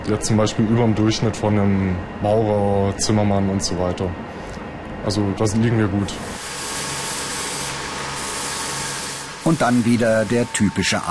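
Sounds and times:
speech: 0.0s - 4.4s, 5.0s - 6.4s, 9.5s - 11.0s
grinding and polishing machines running: 6.0s - 11.0s.

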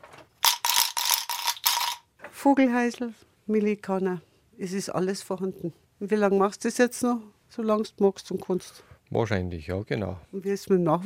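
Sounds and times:
hand ratchet noisemaker rattling: 0.4s - 2.0s
speech: 2.4s - 11.0s.

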